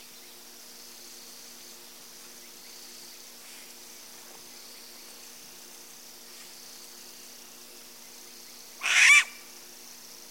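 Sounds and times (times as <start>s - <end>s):
faint insect hum: 0.0s - 10.3s
striped owl screech: 8.8s - 9.4s.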